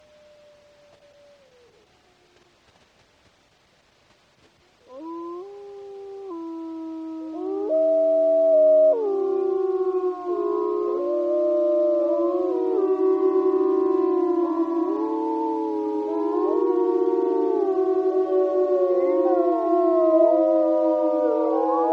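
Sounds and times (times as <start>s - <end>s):
wolf pack howling in Wrangell-St. Elias Alaska: 4.9s - 21.9s.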